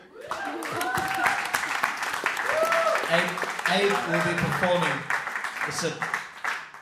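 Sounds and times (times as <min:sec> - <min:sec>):
audience applause: 0:00.2 - 0:06.8
speech: 0:03.1 - 0:06.2.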